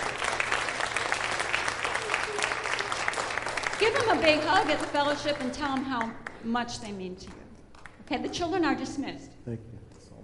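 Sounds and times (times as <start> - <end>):
audience applause: 0.0 - 6.4
speech: 3.8 - 7.4, 8.1 - 9.8.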